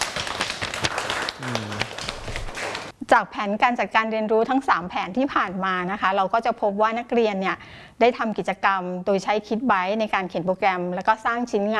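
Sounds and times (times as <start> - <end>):
students applauding: 0.0 - 2.9
speech: 1.4 - 1.8, 3.1 - 11.7.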